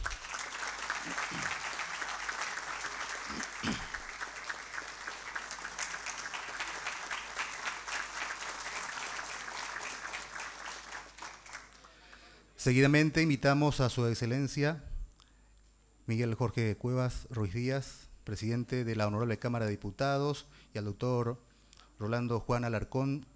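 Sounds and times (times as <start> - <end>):
large audience applause: 0.0 - 11.9
speech: 1.0 - 1.7, 12.6 - 14.9, 16.1 - 23.3.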